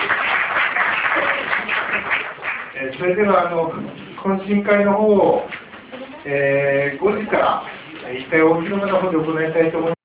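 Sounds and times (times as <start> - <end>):
audience applause: 0.0 - 2.8
speech: 3.0 - 5.6, 6.2 - 10.0.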